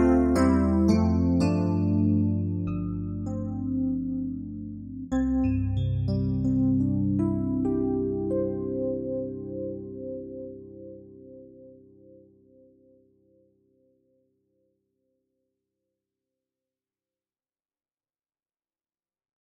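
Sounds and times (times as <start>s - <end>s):
soft electric piano: 0.0s - 14.2s.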